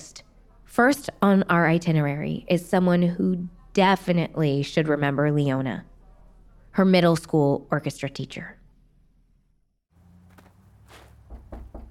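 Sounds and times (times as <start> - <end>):
speech: 0.8 - 5.9, 6.8 - 8.6
knocking on a door: 11.3 - 11.9.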